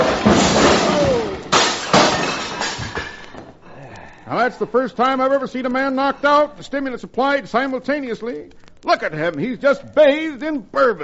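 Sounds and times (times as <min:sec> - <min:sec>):
glass bottles crashing and shattering: 0:00.0 - 0:03.4
speech: 0:04.5 - 0:11.0.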